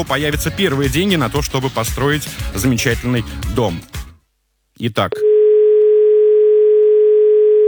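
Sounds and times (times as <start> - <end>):
speech: 0.0 - 4.0, 4.8 - 5.3
telephone ringback tone: 5.2 - 7.6.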